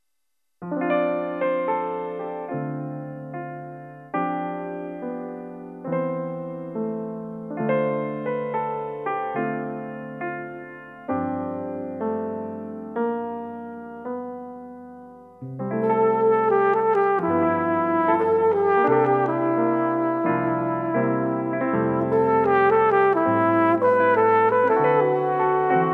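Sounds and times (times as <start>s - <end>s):
piano playing: 0.6s - 25.9s
flugelhorn: 15.8s - 25.9s.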